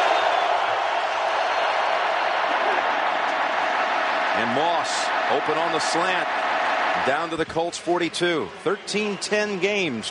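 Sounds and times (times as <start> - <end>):
crowd noise at the RCA Dome: 0.0 - 10.0
speech: 4.4 - 6.4, 7.0 - 10.0.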